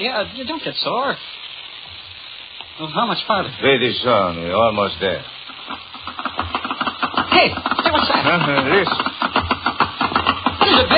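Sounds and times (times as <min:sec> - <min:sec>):
speech: 0:00.0 - 0:01.4, 0:02.8 - 0:05.8, 0:07.4 - 0:09.1, 0:10.7 - 0:10.9
small hoofs clattering past: 0:05.6 - 0:10.9.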